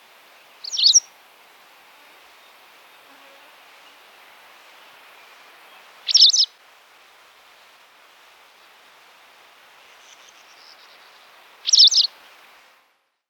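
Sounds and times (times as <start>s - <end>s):
quiet background hiss: 0.0s - 13.2s
white wagtail calls: 0.6s - 1.1s, 4.8s - 6.5s, 10.0s - 12.1s.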